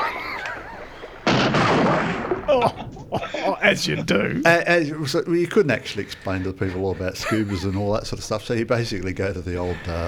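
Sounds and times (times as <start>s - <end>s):
laughter: 0.0s - 1.3s, 2.4s - 10.0s
gunshot fired at a shark in a film scene: 1.2s - 2.9s
speech: 2.6s - 2.9s, 3.6s - 10.0s.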